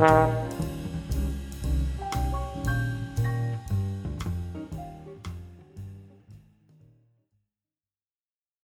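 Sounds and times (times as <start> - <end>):
4-note iv chord: 0.0 - 5.8.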